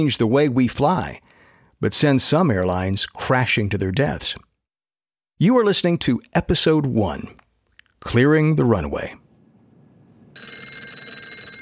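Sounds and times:
speech: 0:00.0 - 0:04.5, 0:05.4 - 0:07.4, 0:08.0 - 0:09.2
telephone bell ringing: 0:10.3 - 0:11.6.

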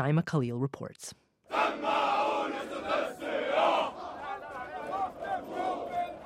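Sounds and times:
speech: 0:00.0 - 0:02.0
police recruits shouting in unison: 0:01.5 - 0:06.2.

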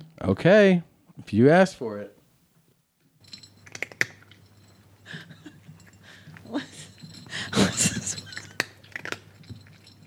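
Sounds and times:
speech: 0:00.2 - 0:02.2
cat crunching dry food: 0:03.2 - 0:05.0, 0:05.6 - 0:10.0.

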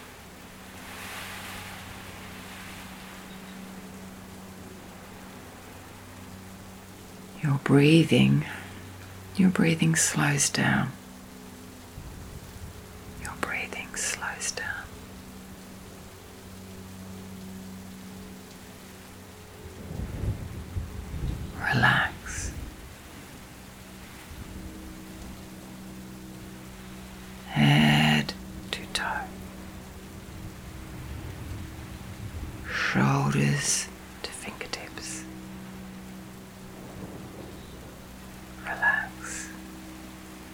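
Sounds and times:
low thunder rumbling: 0:00.0 - 0:40.5
steady rain: 0:00.0 - 0:40.5
speech: 0:07.4 - 0:08.6, 0:09.4 - 0:11.0
soft whispered voice: 0:07.4 - 0:08.8, 0:09.4 - 0:11.0, 0:13.2 - 0:14.9, 0:21.6 - 0:22.6, 0:27.4 - 0:29.4, 0:32.7 - 0:35.3, 0:38.6 - 0:39.6.

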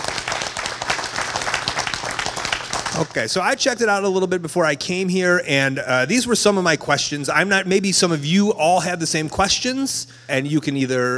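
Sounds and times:
crowd applauding: 0:00.0 - 0:03.3
speech: 0:03.0 - 0:11.1.

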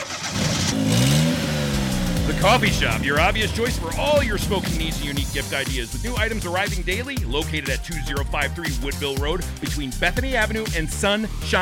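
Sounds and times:
car engine revving as the car drives off: 0:00.0 - 0:06.4
speech: 0:02.4 - 0:11.6.

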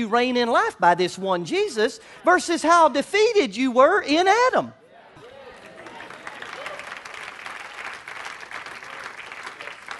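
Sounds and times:
speech: 0:00.0 - 0:04.8
audience clapping: 0:05.5 - 0:09.9.

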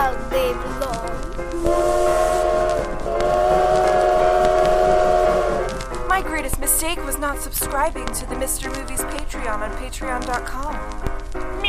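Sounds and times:
train rumbling along: 0:00.0 - 0:08.0
train whistle: 0:01.5 - 0:05.8
speech: 0:07.3 - 0:11.1.

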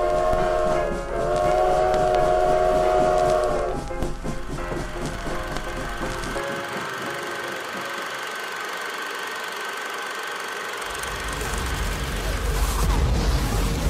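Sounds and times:
train horn blaring: 0:00.0 - 0:08.3
train rumbling: 0:00.0 - 0:09.9, 0:10.8 - 0:13.8
clattering rail noise: 0:00.0 - 0:13.8.

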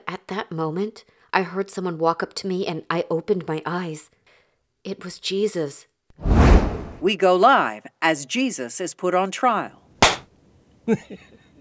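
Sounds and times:
speech: 0:00.3 - 0:04.2, 0:04.8 - 0:09.8, 0:10.9 - 0:11.3
slap to the face: 0:10.0 - 0:10.2.

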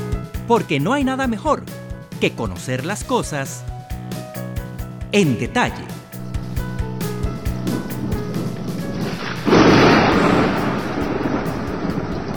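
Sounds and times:
speech: 0:00.5 - 0:03.7, 0:05.1 - 0:06.0
steady rain in a thunderstorm: 0:06.2 - 0:12.3
thunderclap rolling into rumble: 0:06.2 - 0:12.3.

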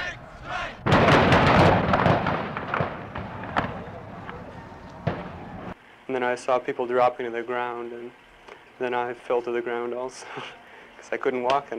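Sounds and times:
gunfire: 0:00.5 - 0:05.8
speech: 0:06.1 - 0:08.2, 0:08.8 - 0:11.7.

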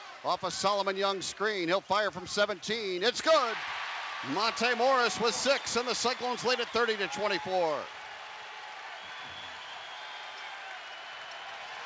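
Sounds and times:
speech: 0:00.2 - 0:08.0
basketball crowd cheering: 0:03.1 - 0:11.8.

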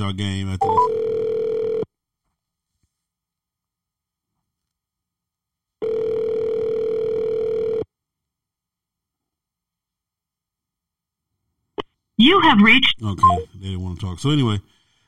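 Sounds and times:
speech: 0:00.0 - 0:01.1, 0:12.2 - 0:14.7
outgoing phone call ringback tone: 0:00.6 - 0:01.9, 0:05.8 - 0:07.8.

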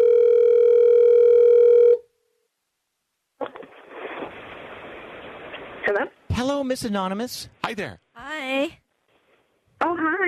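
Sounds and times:
buzzing telephone dial tone: 0:00.0 - 0:02.0
speech: 0:05.9 - 0:08.8.

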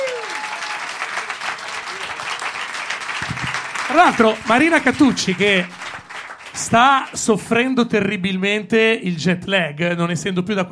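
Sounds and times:
auditorium audience applauding: 0:00.0 - 0:07.5
speech: 0:03.9 - 0:05.8, 0:06.6 - 0:10.6.

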